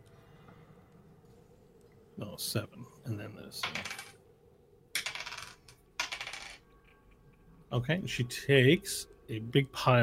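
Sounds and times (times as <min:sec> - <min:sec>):
speech: 0:02.2 - 0:04.1, 0:07.7 - 0:10.0
damage dice rolling: 0:03.6 - 0:04.2, 0:05.0 - 0:06.6.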